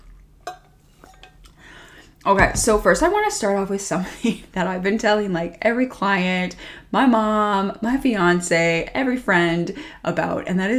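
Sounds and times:
person taking a little sip of water: 0.0s - 2.3s
speech: 2.2s - 10.7s.

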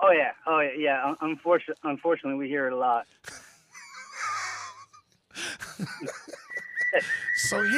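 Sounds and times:
speech: 0.1s - 3.5s, 5.8s - 7.7s
laughter: 3.2s - 7.4s
whistle sound effect: 6.4s - 7.7s.

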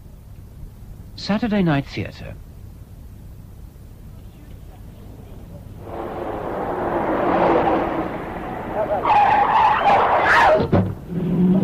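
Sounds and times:
speech: 1.2s - 2.5s
car engine roaring: 4.2s - 11.6s
car tires screeching as it skids in a road accident: 4.6s - 11.6s.

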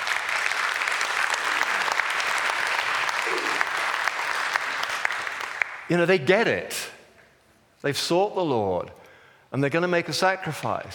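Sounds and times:
audience clapping: 0.0s - 6.2s
speech: 5.9s - 7.0s, 7.8s - 10.9s.

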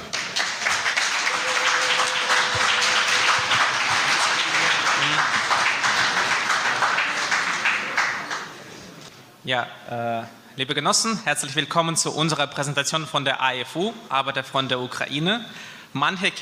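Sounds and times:
audience applause: 0.0s - 8.8s
speech: 9.5s - 16.3s.

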